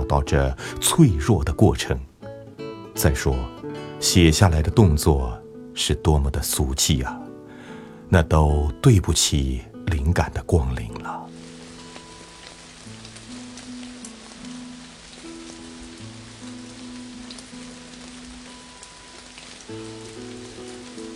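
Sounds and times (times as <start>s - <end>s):
steady rain: 0.0s - 2.3s, 10.5s - 21.1s
speech: 0.1s - 2.1s, 3.0s - 7.3s, 8.1s - 11.2s.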